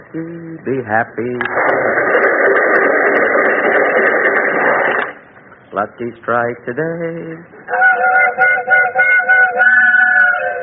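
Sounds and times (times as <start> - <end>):
faint low hum: 0.0 - 10.6
speech: 0.1 - 3.3, 5.7 - 7.8
chord-like train whistle: 7.7 - 10.6.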